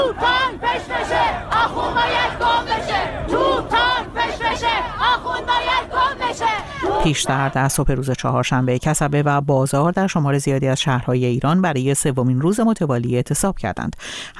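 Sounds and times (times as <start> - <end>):
protest crowd chanting slogans: 0.0 - 8.0
speech: 7.0 - 14.3.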